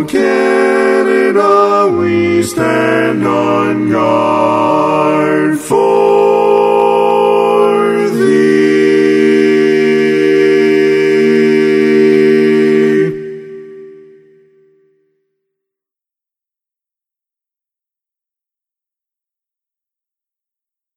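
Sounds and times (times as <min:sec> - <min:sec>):
national anthem accompaniment without lead: 0:00.0 - 0:15.0.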